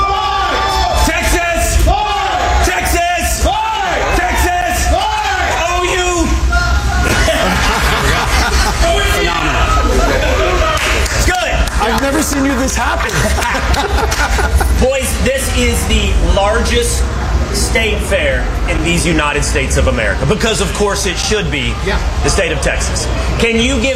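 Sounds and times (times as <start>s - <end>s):
large crowd shouting back in unison: 0.0s - 11.1s
laughter: 6.7s - 15.4s
speech: 16.3s - 17.1s, 17.7s - 23.9s.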